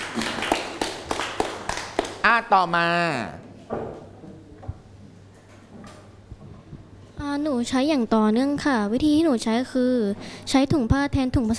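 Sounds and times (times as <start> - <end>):
scattered hand claps in a classroom for a student: 0.0 - 2.3
speech: 2.2 - 3.8, 7.2 - 11.5.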